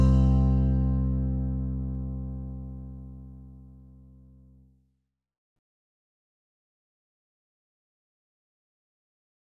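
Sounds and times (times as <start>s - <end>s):
backing track in C major: 0.0s - 3.2s.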